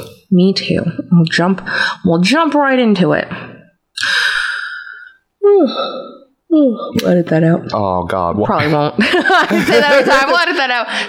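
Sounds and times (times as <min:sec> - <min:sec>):
speech: 0:00.0 - 0:04.1, 0:05.6 - 0:11.0
person yawning: 0:04.0 - 0:06.9
laughter: 0:08.6 - 0:11.0.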